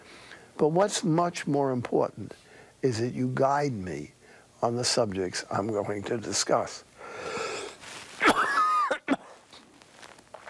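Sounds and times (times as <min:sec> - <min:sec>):
speech: 0:00.6 - 0:07.4
person coughing: 0:08.2 - 0:09.5.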